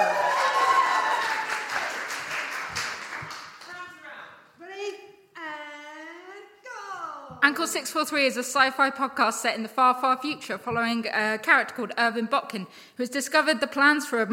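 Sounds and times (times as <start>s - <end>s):
audience applause: 0.0s - 3.7s
speech: 7.4s - 14.3s.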